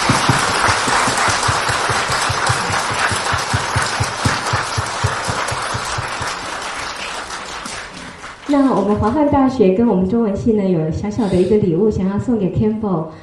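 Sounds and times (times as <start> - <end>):
warm audience applause: 0.0 - 8.9
speech: 8.5 - 13.2.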